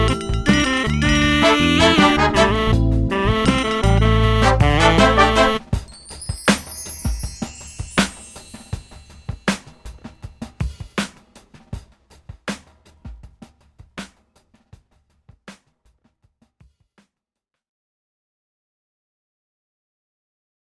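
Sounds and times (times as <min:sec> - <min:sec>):
music groove in A: 0:00.0 - 0:10.2.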